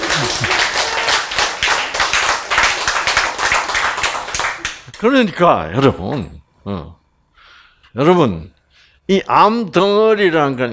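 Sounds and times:
audience clapping: 0:00.0 - 0:06.0
speech: 0:05.0 - 0:07.0, 0:07.9 - 0:10.7.

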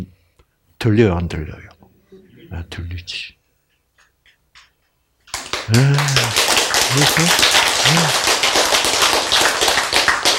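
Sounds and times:
speech: 0:00.8 - 0:01.7, 0:02.5 - 0:03.4, 0:05.7 - 0:08.3
person clapping: 0:05.3 - 0:10.3.

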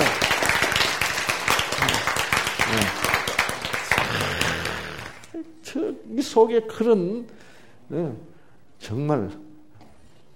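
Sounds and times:
audience applause: 0:00.0 - 0:05.3
speech: 0:06.1 - 0:09.5.

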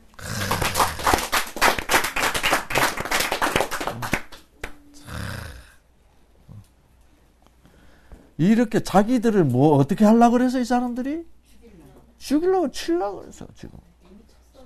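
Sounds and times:
audience clapping hands: 0:00.0 - 0:04.9
speech: 0:08.4 - 0:11.4, 0:12.2 - 0:13.8.

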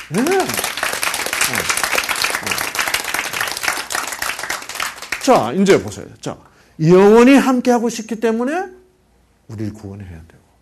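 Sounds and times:
audience applauding: 0:00.0 - 0:05.9
speech: 0:00.1 - 0:00.7, 0:05.3 - 0:08.8, 0:09.5 - 0:10.4.

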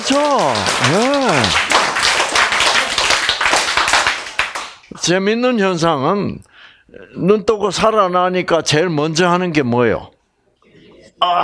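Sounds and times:
audience clapping: 0:00.0 - 0:05.1
speech: 0:00.1 - 0:01.8, 0:05.0 - 0:10.1, 0:11.2 - 0:11.4.

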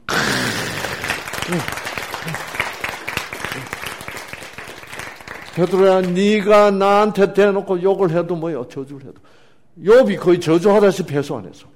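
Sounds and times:
audience applause: 0:00.1 - 0:06.3
speech: 0:01.5 - 0:02.6, 0:05.6 - 0:11.7.

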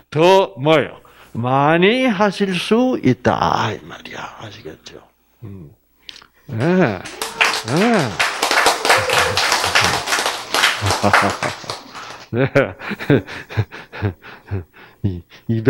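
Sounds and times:
speech: 0:00.1 - 0:08.3, 0:10.8 - 0:15.6
sparse hand clapping from a few people: 0:06.6 - 0:12.3
laughter: 0:06.6 - 0:14.7.

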